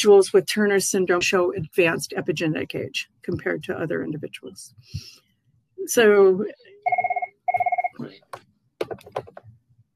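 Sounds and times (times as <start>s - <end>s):
speech: 0.0s - 5.2s, 5.8s - 7.0s, 8.0s - 9.4s
mobile phone ringing: 6.8s - 8.1s
clicks and taps: 7.5s - 9.6s.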